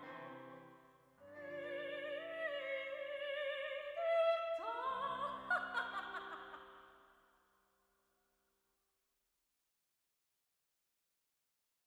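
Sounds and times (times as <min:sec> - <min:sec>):
classical music in ambisonics: 0:00.0 - 0:06.5.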